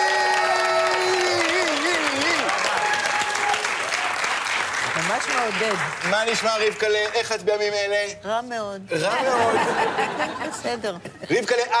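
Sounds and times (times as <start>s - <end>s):
crowd cheering and whooping: 0.0s - 4.5s
audience applause: 0.0s - 7.4s
speech: 5.2s - 11.7s
laughter: 8.9s - 11.7s.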